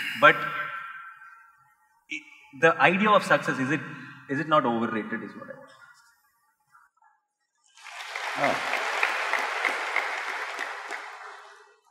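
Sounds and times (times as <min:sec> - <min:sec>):
speech: 0:00.2 - 0:00.6, 0:02.1 - 0:05.8, 0:08.4 - 0:08.8
crowd applause: 0:07.8 - 0:11.8.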